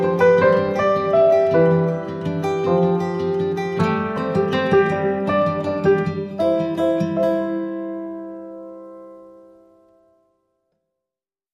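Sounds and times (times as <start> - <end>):
guitar: 0.0 - 10.5
piano: 0.0 - 10.6.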